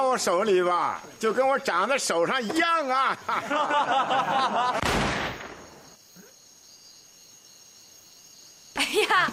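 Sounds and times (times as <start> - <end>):
speech: 0.0 - 4.8
laughter: 2.3 - 4.8, 8.8 - 9.3
Browning pistol accidentally going off, gunshot sound effect: 4.8 - 5.8.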